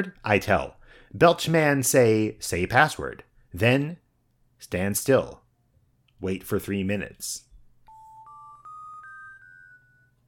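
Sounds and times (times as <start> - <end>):
speech: 0.0 - 4.0, 4.6 - 5.4, 6.2 - 7.5
electronic attention chime of rising tones: 7.9 - 10.2.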